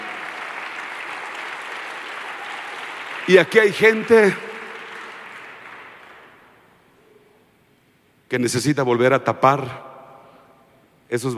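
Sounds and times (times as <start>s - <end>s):
audience applause: 0.0s - 6.6s
speech: 3.3s - 4.5s, 8.3s - 9.9s, 11.1s - 11.3s.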